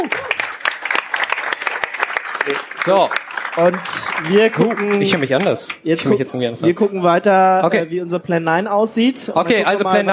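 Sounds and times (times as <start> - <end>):
audience applause: 0.0 - 5.8
speech: 2.4 - 10.1.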